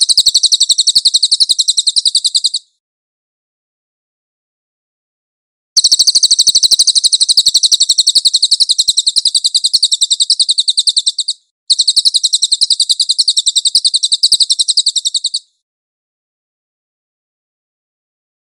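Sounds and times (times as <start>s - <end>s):
cililin bird singing shrill trill: 0.0s - 2.8s, 5.8s - 15.6s.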